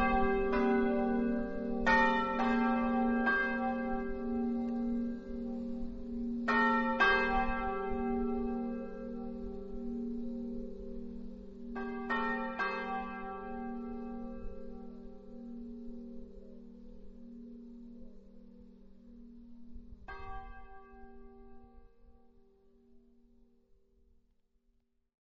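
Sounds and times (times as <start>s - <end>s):
bells ringing: 0.0s - 16.5s.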